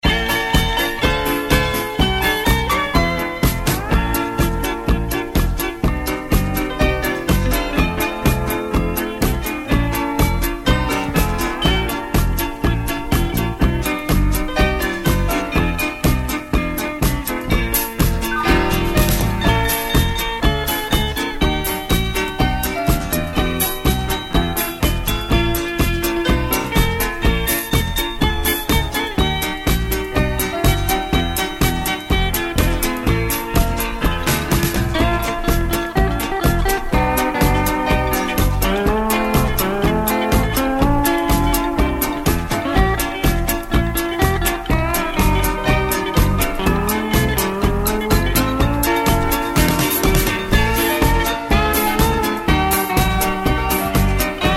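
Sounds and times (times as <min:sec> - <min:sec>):
music: 0:00.0 - 0:54.5.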